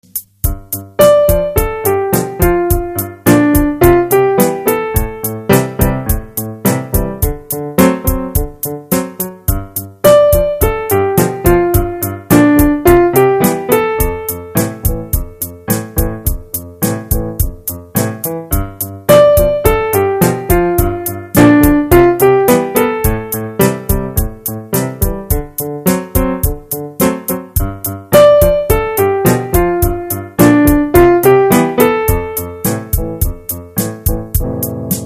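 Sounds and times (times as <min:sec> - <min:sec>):
piano: 0:00.0 - 0:35.0.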